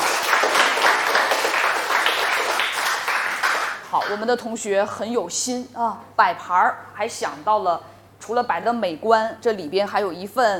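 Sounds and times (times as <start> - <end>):
audience applause: 0.0 - 3.9
speech: 4.0 - 10.5.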